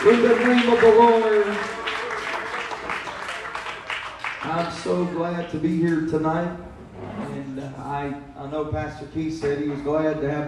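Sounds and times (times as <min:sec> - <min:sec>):
speech: 0:00.0 - 0:01.8, 0:04.8 - 0:06.7, 0:07.6 - 0:10.4
church congregation clapping hands: 0:00.0 - 0:06.0.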